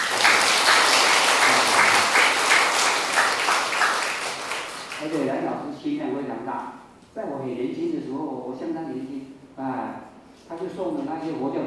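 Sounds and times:
audience applause: 0.0s - 5.2s
speech: 5.1s - 11.6s.

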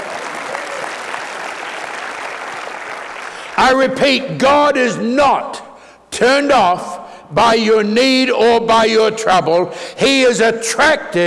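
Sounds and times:
audience hand clapping: 0.0s - 3.6s
speech: 3.6s - 5.6s, 6.2s - 11.2s.

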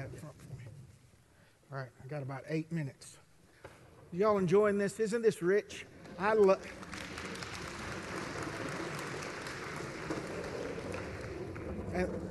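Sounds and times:
speech: 1.7s - 3.2s, 4.1s - 7.0s, 12.0s - 12.2s
audience clapping: 6.0s - 12.2s.

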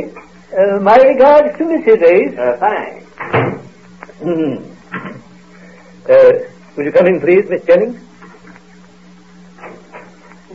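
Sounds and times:
speech: 0.0s - 3.5s, 4.2s - 5.2s, 6.1s - 8.1s
back door creaking open and shut: 3.2s - 3.7s.

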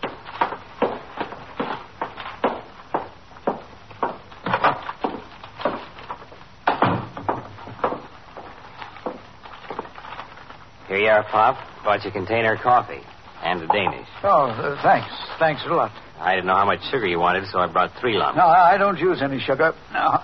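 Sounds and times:
shoes climbing wooden stairs: 0.0s - 9.9s
speech: 11.1s - 20.2s.

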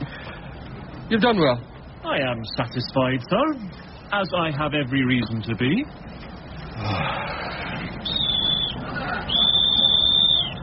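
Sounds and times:
speech: 1.1s - 6.2s, 6.8s - 7.6s
police whistle: 8.0s - 10.6s.

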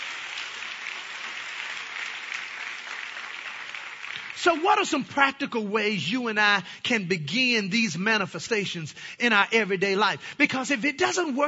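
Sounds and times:
audience clapping: 0.0s - 5.5s
speech: 4.4s - 11.4s.

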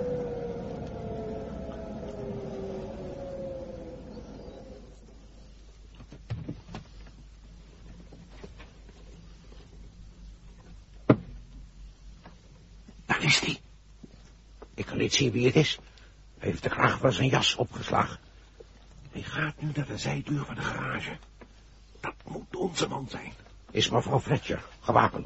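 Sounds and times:
car driving up to a garage with its lights off, low engine rumble: 0.0s - 14.8s
sharp knock: 11.1s - 11.4s
speech: 13.3s - 13.6s, 15.0s - 18.3s, 19.2s - 21.4s, 22.6s - 25.2s.

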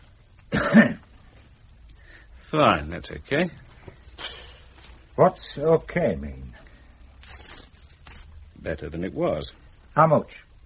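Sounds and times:
person coughing: 0.5s - 1.1s
speech: 2.5s - 4.4s, 5.2s - 6.6s, 8.6s - 10.5s.

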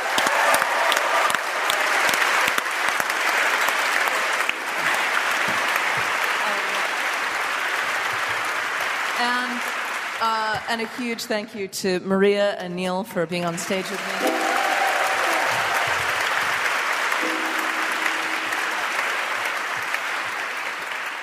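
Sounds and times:
audience applause: 0.0s - 10.9s, 13.6s - 21.2s
speech: 10.2s - 14.4s.

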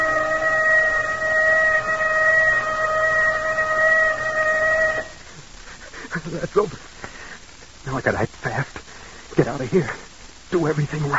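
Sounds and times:
loud steady whistle: 0.0s - 5.3s
low rumbling: 0.0s - 5.6s
speech: 6.2s - 6.9s, 7.9s - 8.7s, 9.4s - 11.1s.

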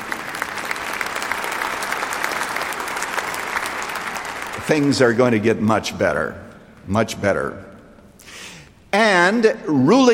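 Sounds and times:
audience applause: 0.0s - 5.4s
speech: 4.7s - 7.7s, 8.9s - 10.1s.

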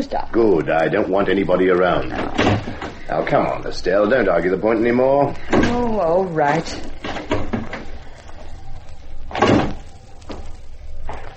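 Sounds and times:
speech: 0.0s - 6.9s
stage door swinging open with a thump and creak: 2.0s - 3.4s, 5.4s - 8.6s, 9.3s - 11.3s.

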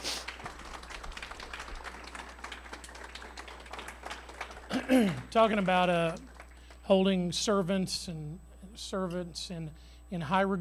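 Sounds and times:
audience applauding: 0.0s - 7.0s
speech: 4.8s - 6.3s, 6.9s - 10.6s.

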